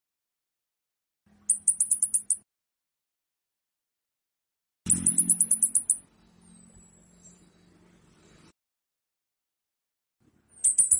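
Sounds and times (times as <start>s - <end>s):
orange-headed thrush giving sharp ticking notes: 4.9s - 6.0s.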